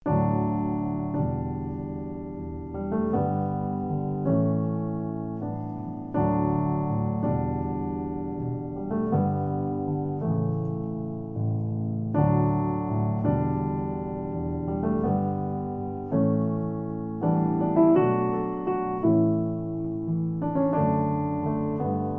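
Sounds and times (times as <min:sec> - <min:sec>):
solo piano: 0:00.0 - 0:22.1.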